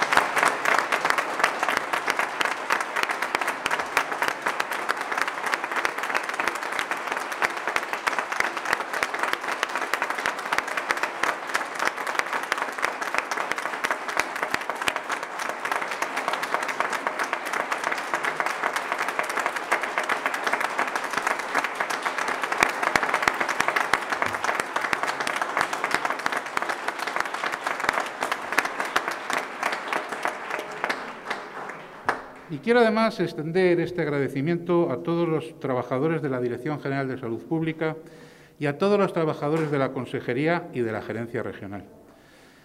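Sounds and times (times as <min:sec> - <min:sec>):
audience applause: 0:00.0 - 0:32.9
speech: 0:32.6 - 0:42.0.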